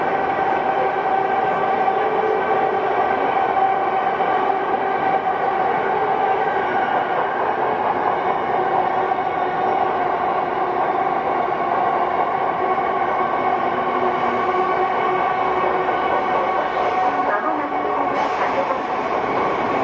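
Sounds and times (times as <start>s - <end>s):
Tokyo Metro 05 series wide-door train running: 0.0s - 19.8s.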